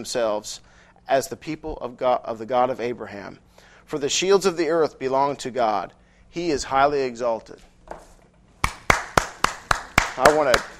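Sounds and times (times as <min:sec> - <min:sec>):
speech: 0:00.0 - 0:08.1, 0:10.2 - 0:10.7
people clapping: 0:08.6 - 0:10.7.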